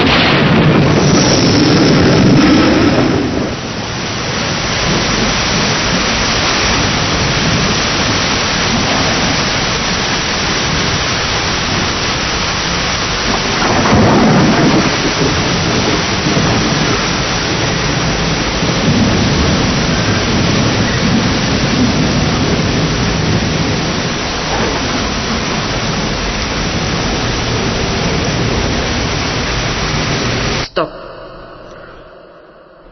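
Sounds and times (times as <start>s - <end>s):
heavy rain: 0.0s - 32.9s
thunder rumbling: 0.0s - 32.9s.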